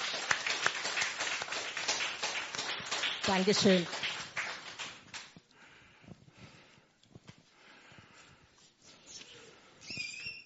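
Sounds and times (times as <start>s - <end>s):
applause: 0.0s - 5.5s
speech: 3.2s - 4.1s.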